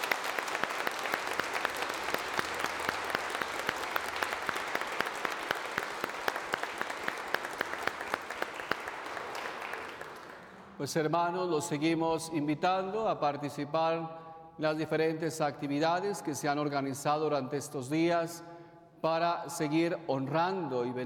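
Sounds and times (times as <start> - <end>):
audience applause: 0.0 - 10.8
speech: 10.8 - 21.0.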